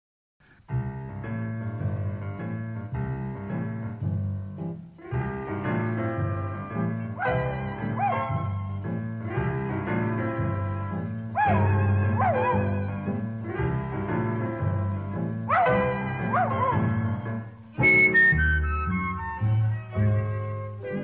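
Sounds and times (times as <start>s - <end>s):
bouncy steady musical accompaniment: 0.7s - 21.0s
small dog with a toothache whimpering and crying: 11.4s - 12.7s.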